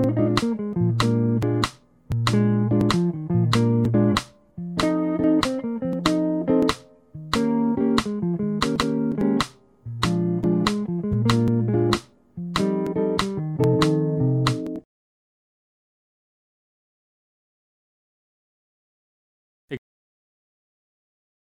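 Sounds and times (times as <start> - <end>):
jazz music: 0.0 - 14.8.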